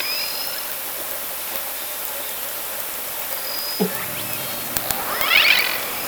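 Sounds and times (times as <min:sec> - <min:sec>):
orca sounds passing by at night: 0:03.8 - 0:06.0.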